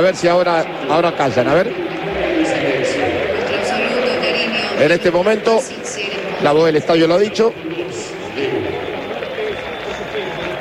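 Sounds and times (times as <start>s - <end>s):
speech: 0.0s - 2.3s, 4.8s - 7.7s
respectful applause across a football stadium: 0.0s - 10.5s.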